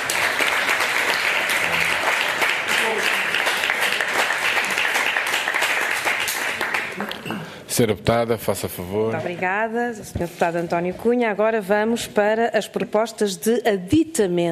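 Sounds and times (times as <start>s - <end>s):
crowd applause in a parliamentary chamber: 0.0s - 7.5s
speech: 7.8s - 14.4s.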